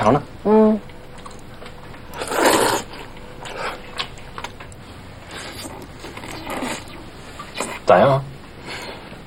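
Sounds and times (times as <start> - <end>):
speech: 0.0 - 0.8, 7.9 - 8.2
slurping and chewing of braised meat noodles: 2.1 - 4.2, 5.2 - 7.9.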